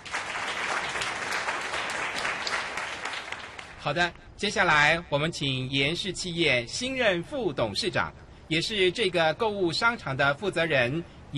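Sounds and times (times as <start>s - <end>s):
crowd applauding: 0.0s - 3.8s
speech: 3.8s - 11.3s.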